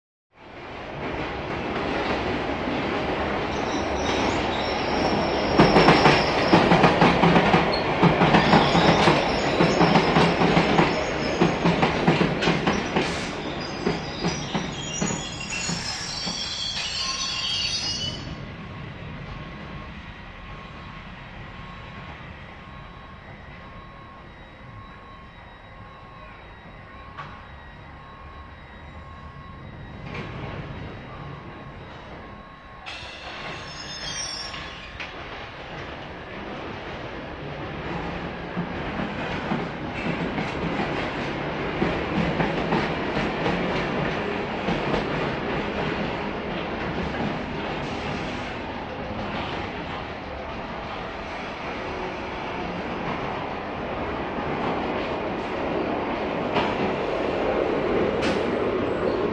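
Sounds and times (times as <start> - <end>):
London underground train station ambience: 0.4 - 59.3.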